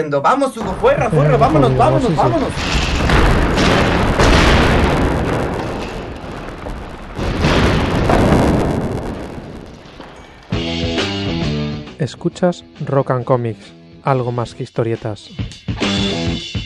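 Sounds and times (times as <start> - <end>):
speech: 0.0 - 4.0, 12.0 - 16.5
crumbling clattering debris: 0.6 - 10.8
collapsing shelf crashing: 0.8 - 10.5.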